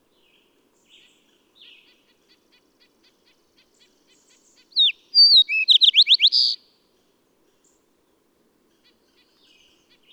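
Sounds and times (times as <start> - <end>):
bird song: 0.0 - 2.4, 3.0 - 6.6, 8.7 - 10.1.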